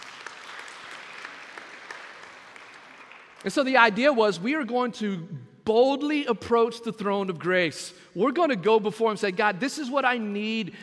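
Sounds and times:
audience hand clapping in praise: 0:00.0 - 0:03.8
speech: 0:03.4 - 0:10.8.

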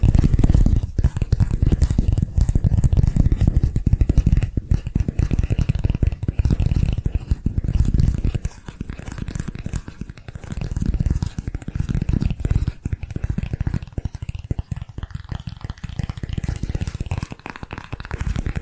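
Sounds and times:
rapid tapping on different areas: 0:00.0 - 0:18.6.

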